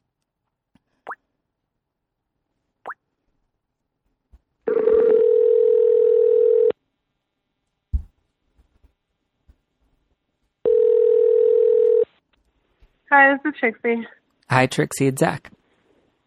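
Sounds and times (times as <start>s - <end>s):
telephone ringing tone through the line: 4.7s - 6.7s, 10.6s - 12.1s
speech: 13.3s - 15.6s.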